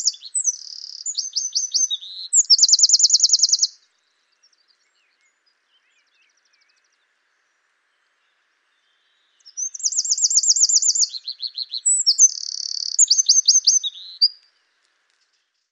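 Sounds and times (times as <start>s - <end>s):
Eurasian wren singing: 0.0s - 3.8s, 9.3s - 14.4s.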